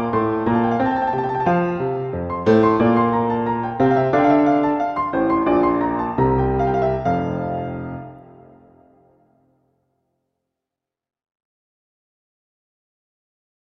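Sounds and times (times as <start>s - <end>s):
allegro classical piece: 0.0s - 9.0s.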